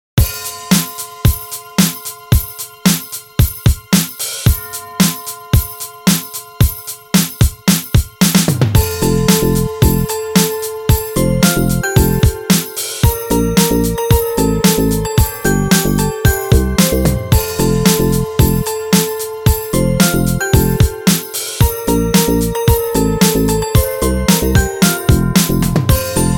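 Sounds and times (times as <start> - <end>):
disco jingle: 0.2 - 26.3.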